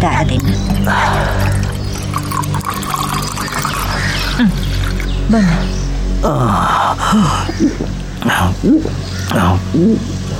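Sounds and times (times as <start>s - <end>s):
speech: 0.0s - 1.4s, 4.4s - 4.6s, 5.3s - 10.2s
water pouring into a glass: 0.2s - 5.2s.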